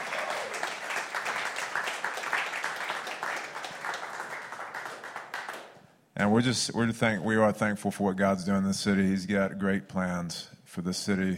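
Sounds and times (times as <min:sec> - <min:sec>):
church congregation round of applause for two guest speakers: 0:00.0 - 0:05.9
speech: 0:06.2 - 0:11.3.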